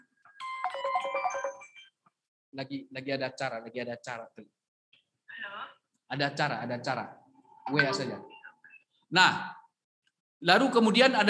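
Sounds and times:
melodic phone ringtone: 0:00.3 - 0:01.9
speech: 0:02.6 - 0:04.6, 0:05.4 - 0:08.3, 0:09.1 - 0:09.6, 0:10.4 - 0:11.2.

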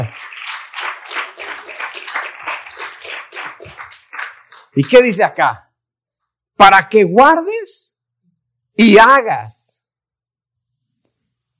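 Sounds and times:
speech: 0:00.0 - 0:00.2, 0:04.8 - 0:05.6, 0:06.6 - 0:07.8, 0:08.8 - 0:09.7
audience applause: 0:00.0 - 0:05.2.

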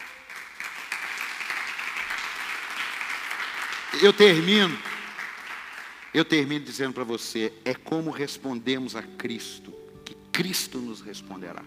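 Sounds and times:
crowd applause: 0:00.0 - 0:06.1
speech: 0:03.9 - 0:04.9, 0:06.1 - 0:09.8, 0:10.4 - 0:11.6.

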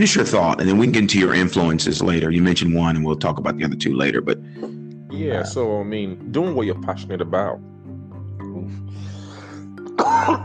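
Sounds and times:
speech: 0:00.0 - 0:07.7, 0:10.0 - 0:10.4
throat clearing: 0:09.9 - 0:10.4.

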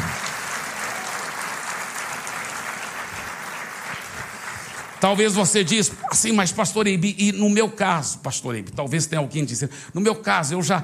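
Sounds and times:
crowd applauding: 0:00.0 - 0:06.2
speech: 0:05.0 - 0:10.8.

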